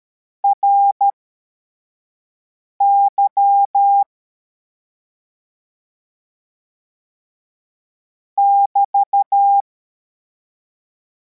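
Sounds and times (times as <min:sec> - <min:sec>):
CW morse code beeps: 0:02.8 - 0:04.1, 0:08.4 - 0:09.6.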